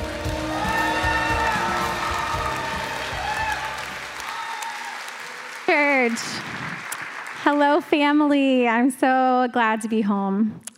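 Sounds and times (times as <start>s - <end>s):
City Church congregation applauding a woman preacher: 0.0s - 7.9s
speech: 7.5s - 10.7s.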